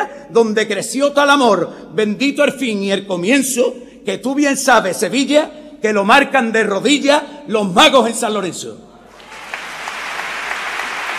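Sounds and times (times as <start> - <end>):
speech: 0.3 - 8.9
audience ovation, applause: 9.1 - 11.1.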